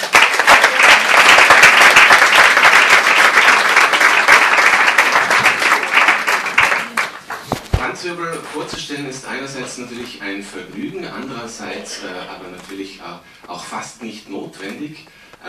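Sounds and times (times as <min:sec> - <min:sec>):
audience applause: 0:00.0 - 0:07.6
speech: 0:08.1 - 0:15.4.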